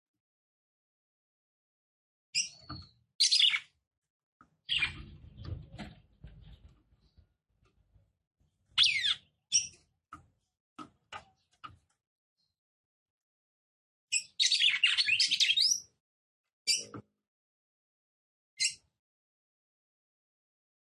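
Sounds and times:
red-cowled cardinal chirping and twittering: 2.4 - 3.7, 4.7 - 7.2, 8.8 - 9.8, 14.1 - 15.9, 16.7 - 17.0, 18.6 - 18.8.

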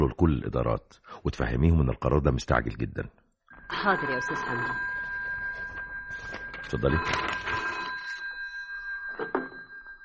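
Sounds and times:
speech: 0.0 - 4.9, 6.6 - 7.4
office telephone ringing with an electronic bell tone: 3.6 - 10.0.

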